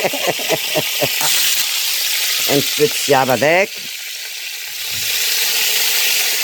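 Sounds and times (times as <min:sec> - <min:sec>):
laughter: 0:00.0 - 0:01.5
speech: 0:00.0 - 0:03.9
garlic, onion and thyme sizzling in a pan: 0:00.0 - 0:06.4.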